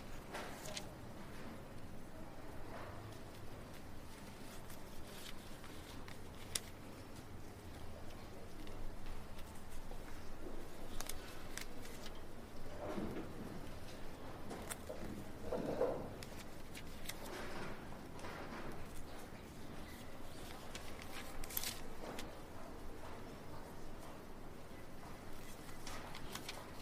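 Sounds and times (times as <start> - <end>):
low steady murmur in a quiet library: 0.0 - 26.8.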